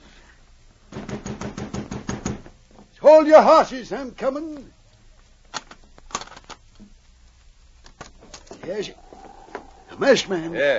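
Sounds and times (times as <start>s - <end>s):
pounding on a door: 0.9s - 2.5s
speech: 3.1s - 4.8s, 8.7s - 9.0s, 10.0s - 10.7s.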